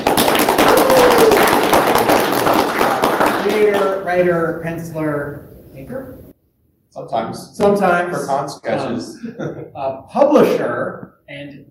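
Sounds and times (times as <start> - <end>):
audience applauding for arriving guest: 0.0 - 4.2
speech: 3.7 - 6.3, 6.9 - 11.6.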